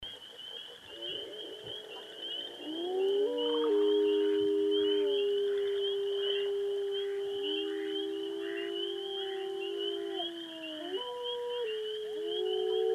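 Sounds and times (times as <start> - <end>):
several wolves howling in chorus: 0.9 - 12.9.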